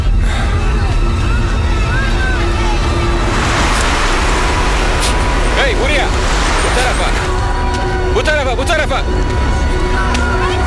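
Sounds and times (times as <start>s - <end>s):
bus pulling up: 0.3s - 10.6s
steady loud traffic rumble: 0.3s - 10.6s
broad hiss: 2.4s - 8.2s.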